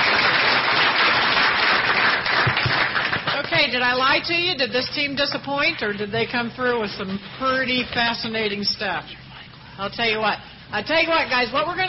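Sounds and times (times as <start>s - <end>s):
audience applause: 0.0s - 3.5s
speech: 3.7s - 9.2s, 9.8s - 11.8s.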